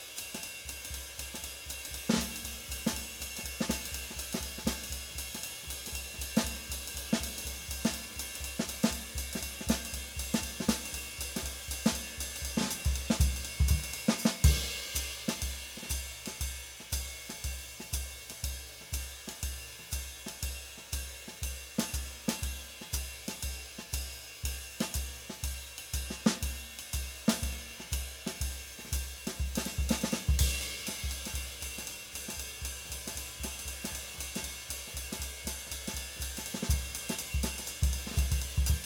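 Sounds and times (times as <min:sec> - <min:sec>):
uptempo bop drumming: 0:00.0 - 0:38.8.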